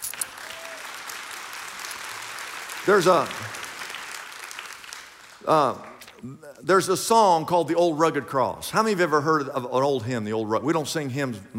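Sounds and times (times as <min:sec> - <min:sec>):
audience clapping: 0:00.0 - 0:06.2
speech: 0:02.8 - 0:03.6, 0:05.5 - 0:11.5.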